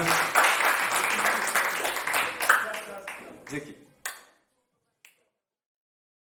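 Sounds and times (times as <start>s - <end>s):
audience applause: 0.0s - 3.6s
speech: 3.5s - 3.8s.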